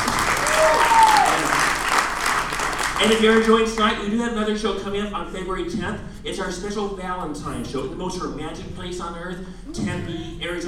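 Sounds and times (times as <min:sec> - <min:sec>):
audience applause at a comedy show: 0:00.0 - 0:03.5
speech: 0:03.0 - 0:10.6.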